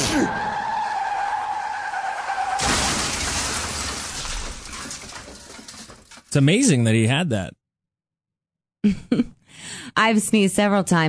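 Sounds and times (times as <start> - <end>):
skidding tires: 0.0 - 5.4
car crash: 0.0 - 6.3
speech: 6.3 - 7.6, 8.8 - 11.0.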